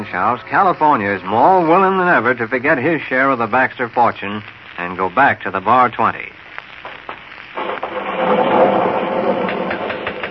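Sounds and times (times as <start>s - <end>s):
speech: 0.1s - 6.4s
thunder rumbling: 7.6s - 10.2s.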